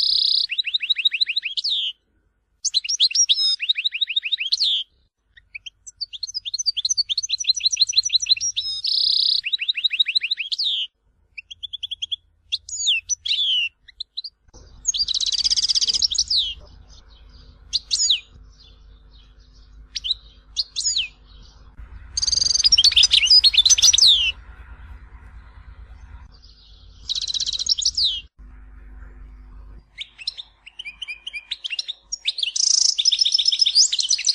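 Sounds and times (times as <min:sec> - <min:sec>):
European goldfinch twittering song: 0:00.0 - 0:02.0, 0:02.6 - 0:28.3, 0:30.0 - 0:34.3
low steady hum: 0:10.9 - 0:32.1.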